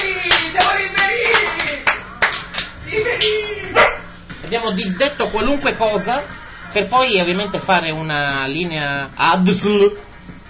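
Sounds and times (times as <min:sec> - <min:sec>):
applause: 0:00.0 - 0:03.3
speech: 0:04.6 - 0:10.1.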